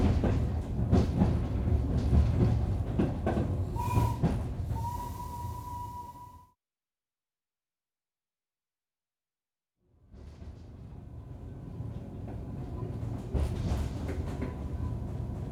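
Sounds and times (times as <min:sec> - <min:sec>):
sightseeing steam train interior running sound: 0:00.0 - 0:06.4, 0:10.2 - 0:15.4.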